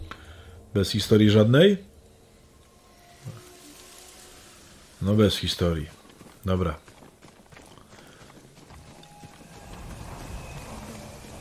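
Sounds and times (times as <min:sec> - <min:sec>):
speech: 0:00.7 - 0:01.9, 0:05.0 - 0:06.9
horse hooves clip-clopping: 0:05.8 - 0:11.4.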